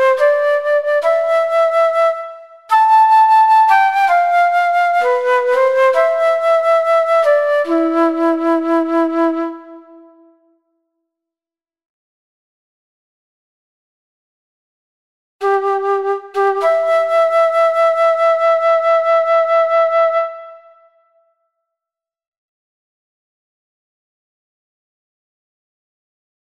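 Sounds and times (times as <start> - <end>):
flute: 0.0 - 10.6, 15.4 - 21.3.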